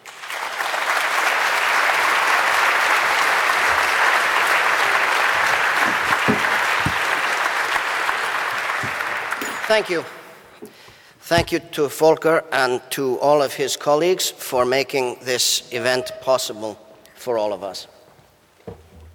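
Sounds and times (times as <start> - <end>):
audience applause welcoming speaker Eben Moglen: 0.0 - 9.7
speech: 9.7 - 10.2, 11.3 - 18.0.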